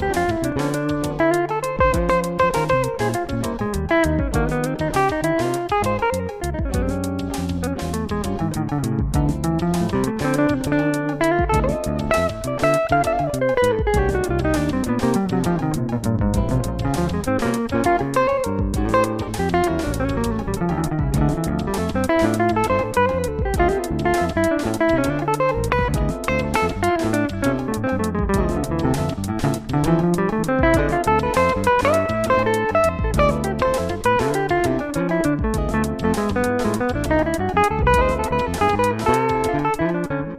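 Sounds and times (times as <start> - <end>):
drum backbeat: 0.0 - 40.2.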